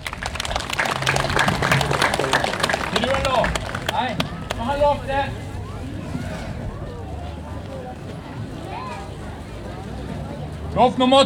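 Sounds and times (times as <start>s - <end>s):
applause from a small group: 0.0s - 4.8s
laughter: 0.0s - 7.6s
faint voice or cheer: 0.0s - 10.5s
speech: 4.8s - 5.5s, 10.8s - 11.2s.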